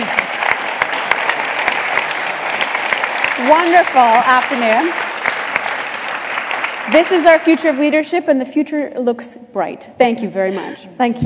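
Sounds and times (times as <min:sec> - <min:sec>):
audience applause: 0:00.0 - 0:07.9
speech: 0:03.5 - 0:05.0, 0:06.9 - 0:11.2.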